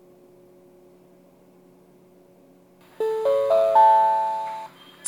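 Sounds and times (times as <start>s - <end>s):
Kanazawa limited express train: 3.0s - 4.8s.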